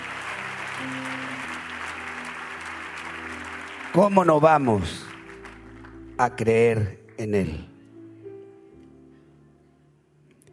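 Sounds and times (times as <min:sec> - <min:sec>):
audience applauding: 0:00.0 - 0:07.0
speech: 0:00.8 - 0:01.5, 0:03.9 - 0:05.1, 0:06.2 - 0:07.7.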